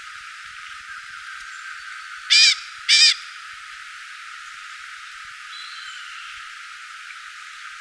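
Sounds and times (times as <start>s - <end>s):
background hiss: 0.0s - 7.7s
bird hoarse grating call: 2.3s - 3.3s.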